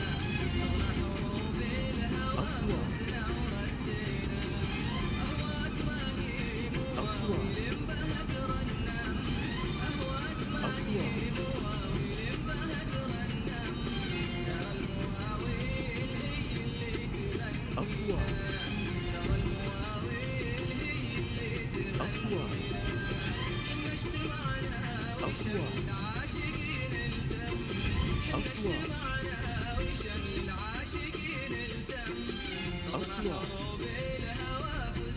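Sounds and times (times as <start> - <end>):
cars travelling on a road: 0.0 - 35.1
radio voice: 2.2 - 3.4, 6.8 - 7.9, 10.4 - 11.7, 17.7 - 18.7, 22.0 - 22.9, 25.2 - 26.1, 28.3 - 29.3, 32.9 - 33.6.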